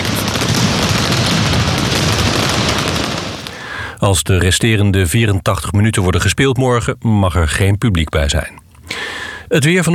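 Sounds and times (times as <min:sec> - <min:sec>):
fireworks exploding in a stadium: 0:00.0 - 0:03.7
speech: 0:04.0 - 0:08.6, 0:09.5 - 0:09.9.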